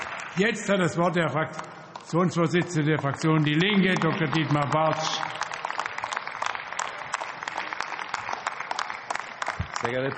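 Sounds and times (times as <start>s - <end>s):
applause from a large crowd in parliament before a speech: 0.0s - 0.8s, 2.8s - 10.1s
speech: 0.4s - 5.3s, 9.8s - 10.1s.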